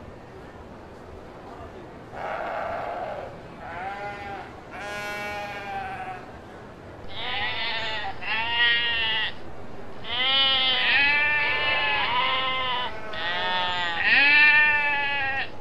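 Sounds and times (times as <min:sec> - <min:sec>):
sheep bleating: 0:02.2 - 0:06.3, 0:07.1 - 0:09.4, 0:10.0 - 0:15.5.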